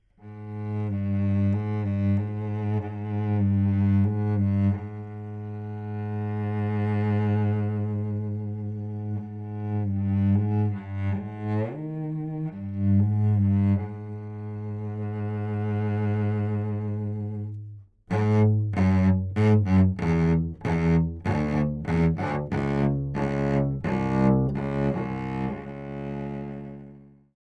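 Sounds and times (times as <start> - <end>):
cello: 0.0 - 27.4.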